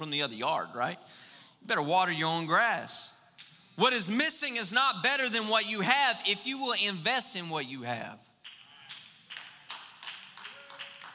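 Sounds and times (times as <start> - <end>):
speech: 0.0 - 3.2, 3.8 - 8.3
few people clapping: 8.4 - 11.1.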